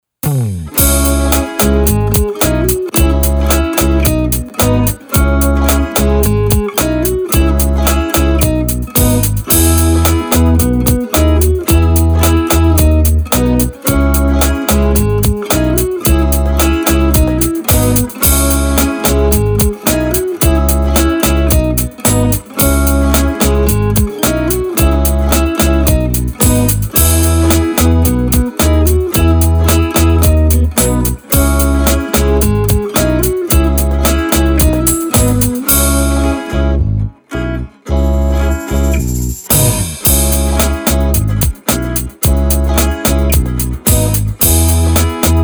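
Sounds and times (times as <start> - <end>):
relaxed chill music: 0.3 - 36.9, 38.0 - 45.4.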